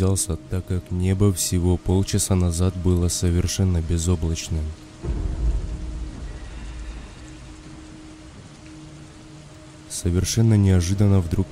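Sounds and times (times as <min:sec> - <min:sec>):
speech: 0:00.0 - 0:05.3, 0:10.0 - 0:11.5
light rain on a road lined with dense forest: 0:00.0 - 0:11.5
low rumble of thunder: 0:04.9 - 0:09.7.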